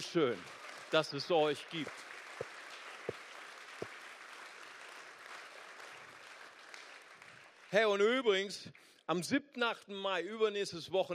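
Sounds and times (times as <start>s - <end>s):
speech: 0.0s - 2.1s, 7.7s - 11.1s
audience applause: 0.0s - 8.1s.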